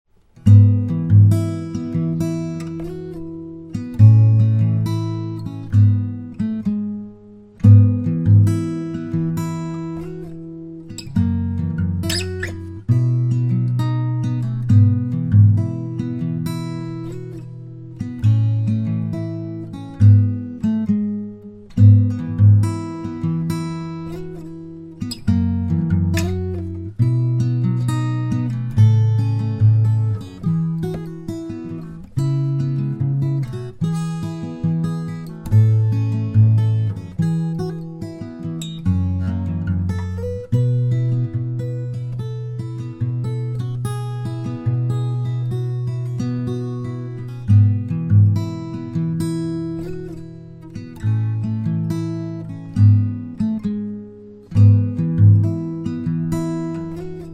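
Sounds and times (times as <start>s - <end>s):
acoustic instrumental music: 0.1s - 57.3s.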